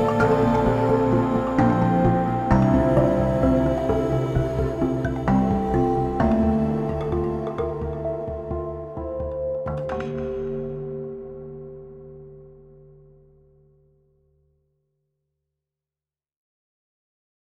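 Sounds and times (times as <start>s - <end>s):
java mallet percussion: 0.0s - 11.4s.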